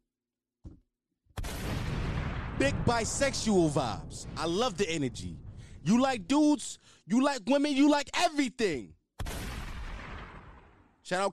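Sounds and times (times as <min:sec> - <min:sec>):
gunshot sound effect: 0:01.4 - 0:04.8, 0:09.2 - 0:11.0
speech: 0:02.6 - 0:09.0, 0:11.1 - 0:11.3.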